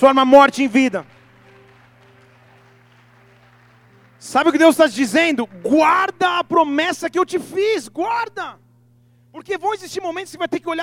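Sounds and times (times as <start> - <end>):
speech: 0.0 - 1.2, 4.2 - 8.6, 9.3 - 10.8
audience applauding: 0.2 - 6.5.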